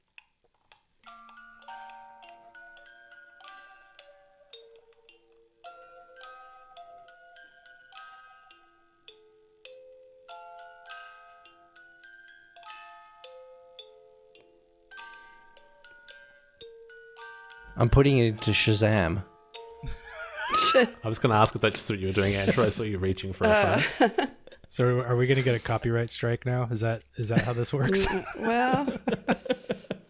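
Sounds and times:
vintage ivory music box playing a tune: 1.0s - 21.0s
speech: 17.8s - 19.3s, 20.8s - 29.4s
laughter: 22.1s - 24.6s, 27.3s - 30.0s.

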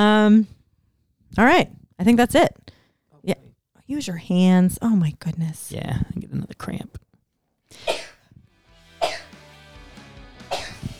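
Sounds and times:
speech: 0.0s - 0.6s, 1.3s - 2.6s, 3.2s - 7.0s
person sneezing: 7.8s - 8.3s, 10.5s - 10.9s.

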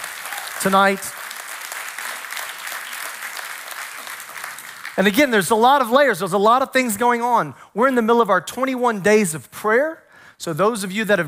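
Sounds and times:
audience hand clapping: 0.0s - 5.1s
speech: 0.6s - 1.2s, 5.0s - 11.2s.

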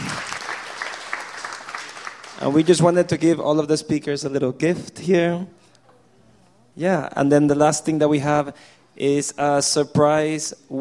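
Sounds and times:
quick round of applause: 0.0s - 2.9s
speech: 2.4s - 5.6s, 6.8s - 10.8s.

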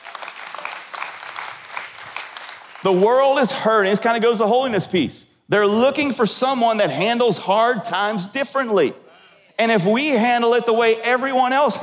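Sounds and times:
people clapping: 0.0s - 3.6s
speech: 2.8s - 9.0s, 9.6s - 11.8s.

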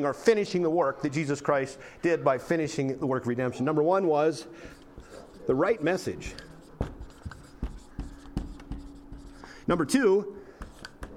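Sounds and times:
speech: 0.0s - 6.5s, 9.7s - 10.4s
hurried sloppy handwriting pen strokes: 4.6s - 9.5s, 10.6s - 11.1s.

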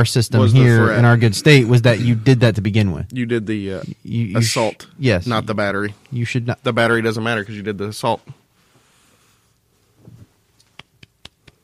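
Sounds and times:
speech: 0.0s - 8.4s
quiet golf clap hand claps: 10.6s - 11.6s.

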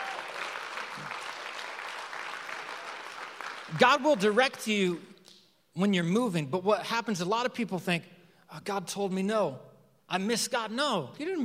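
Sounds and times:
crowd clapping: 0.0s - 5.1s
speech: 3.7s - 5.1s, 5.8s - 11.4s.

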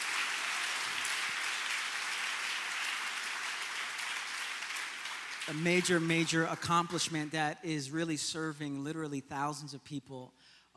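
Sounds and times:
audience applause: 0.0s - 7.2s
speech: 5.5s - 10.7s.

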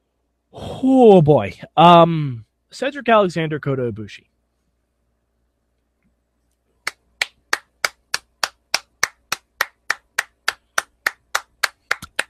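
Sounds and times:
speech: 0.5s - 4.3s
hands clapping: 6.9s - 12.2s.

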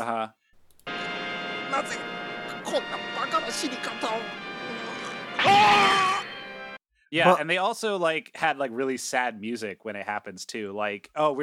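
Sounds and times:
speech: 1.7s - 6.0s, 7.1s - 11.4s
character's death scream from a film: 5.4s - 6.3s.

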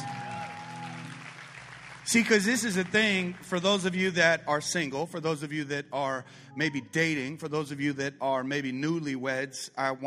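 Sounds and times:
audience applause: 0.0s - 4.2s
speech: 2.1s - 10.0s.

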